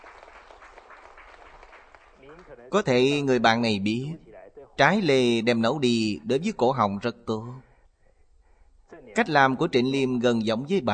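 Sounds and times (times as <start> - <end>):
faint audience applause greeting a participant: 0.0 - 2.9
speech: 2.4 - 4.2, 4.8 - 7.7, 9.2 - 10.9.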